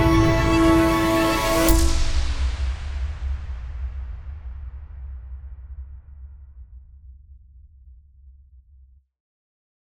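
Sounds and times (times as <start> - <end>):
song backing track music: 0.0 - 2.5.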